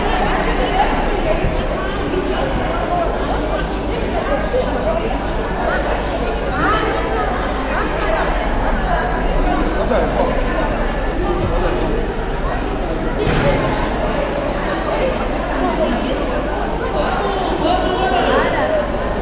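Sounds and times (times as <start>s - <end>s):
market noise: 0.0s - 19.2s.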